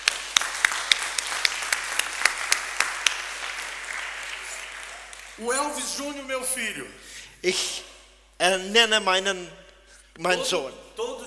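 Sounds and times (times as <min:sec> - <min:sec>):
audience applause: 0:00.0 - 0:05.6
speech: 0:05.4 - 0:09.6, 0:10.2 - 0:11.2.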